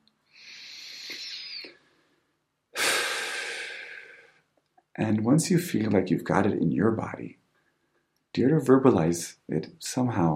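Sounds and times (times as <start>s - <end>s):
slow deep breathing: 0.3s - 4.5s
speech: 5.0s - 7.4s, 8.4s - 10.3s.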